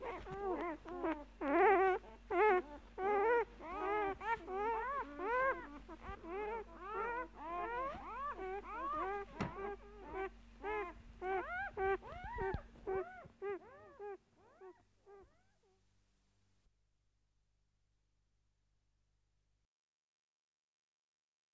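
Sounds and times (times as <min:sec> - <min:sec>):
dog whining and yelping: 0:00.0 - 0:15.8.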